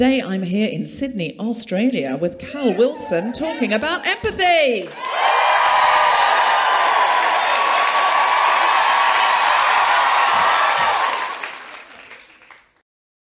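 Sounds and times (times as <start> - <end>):
speech: 0.0 - 5.3
live audience cheering and applause: 2.8 - 12.8
whoops: 4.9 - 11.6.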